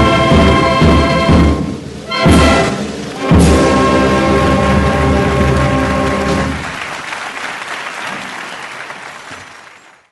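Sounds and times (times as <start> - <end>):
instrumental town anthem: 0.0 - 6.9.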